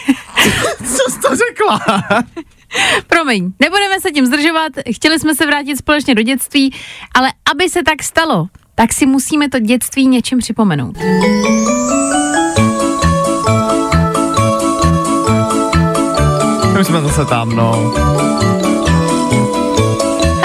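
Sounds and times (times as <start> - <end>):
speech: 1.4 - 12.2, 16.8 - 18.6
children's TV show theme jingle: 11.0 - 20.4.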